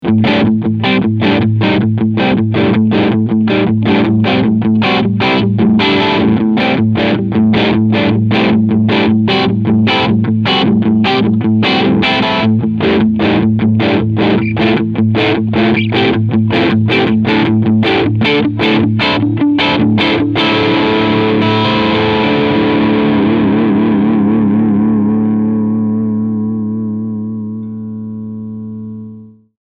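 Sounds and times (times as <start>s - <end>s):
crunchy electric guitar with both pickups: 0.0s - 29.3s.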